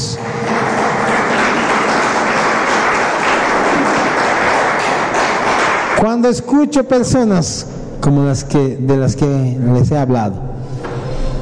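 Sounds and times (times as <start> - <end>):
loud sustained applause from a large crowd: 0.0 - 6.1
speech: 6.0 - 10.5.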